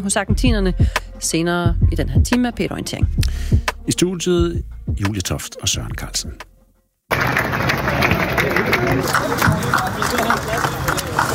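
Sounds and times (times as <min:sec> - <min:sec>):
speech: 0:00.0 - 0:06.5, 0:07.1 - 0:10.9
murmuring voices: 0:07.1 - 0:11.3
outdoor crowd applauding at demonstration: 0:07.1 - 0:11.3.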